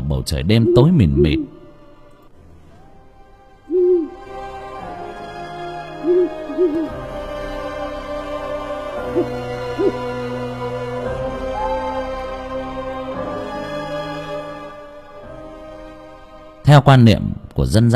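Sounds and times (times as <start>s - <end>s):
steady sustained musical drone: 0.0s - 16.6s
speech: 0.1s - 1.5s, 16.7s - 17.9s
owl hooting on the door of a house at night: 0.5s - 1.7s, 3.7s - 4.2s, 6.0s - 6.9s, 9.1s - 10.1s.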